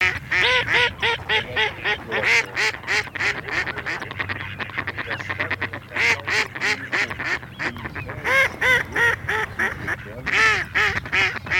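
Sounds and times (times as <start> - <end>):
mallard: 0.0 - 11.5.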